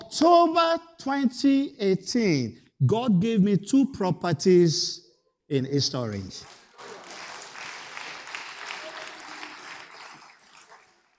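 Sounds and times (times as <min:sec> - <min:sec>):
speech: 0:00.1 - 0:06.6
audience clapping: 0:06.0 - 0:11.1.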